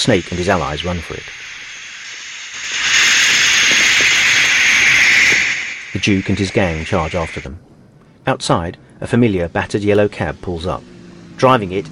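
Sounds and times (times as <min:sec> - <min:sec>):
speech: 0:00.0 - 0:01.5, 0:06.0 - 0:11.9
steam spewing from a shot tank: 0:00.0 - 0:07.5.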